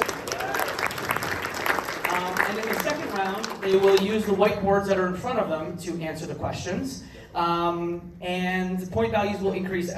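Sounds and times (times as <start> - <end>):
round of applause: 0.0 - 4.1
speech: 3.7 - 9.9.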